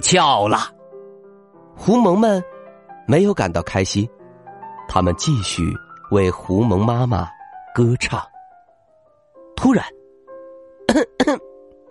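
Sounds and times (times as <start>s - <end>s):
speech: 0.0s - 0.8s, 1.8s - 2.5s, 3.1s - 4.2s, 4.9s - 8.3s, 9.6s - 10.0s, 10.9s - 11.4s
person coughing: 10.9s - 11.5s.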